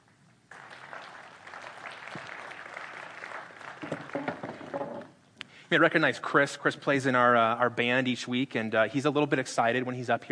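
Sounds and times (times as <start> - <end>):
audience applause: 0.5 - 5.1
speech: 5.7 - 10.3.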